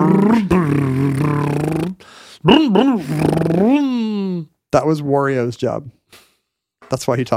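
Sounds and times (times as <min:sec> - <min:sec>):
person imitating car motor noise: 0:00.0 - 0:04.5
speech: 0:02.8 - 0:03.9, 0:04.7 - 0:06.2, 0:06.9 - 0:07.3.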